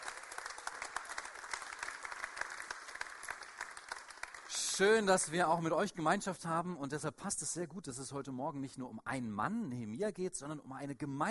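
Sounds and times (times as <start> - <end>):
audience applause: 0.0 - 5.0
speech: 4.8 - 11.2.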